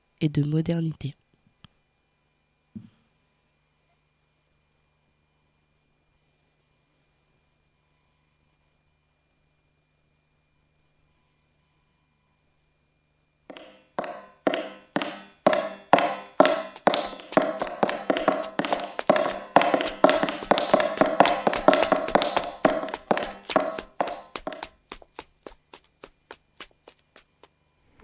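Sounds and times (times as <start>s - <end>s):
speech: 0.2s - 1.2s
footsteps of wooden clogs on street: 13.5s - 27.6s.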